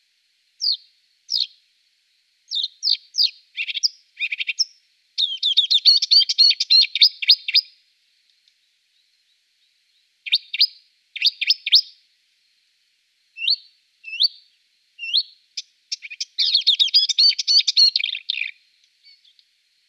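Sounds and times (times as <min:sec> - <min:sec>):
Marsh warbler song: 0:00.6 - 0:01.6, 0:02.5 - 0:07.7, 0:08.9 - 0:12.0, 0:13.4 - 0:19.4.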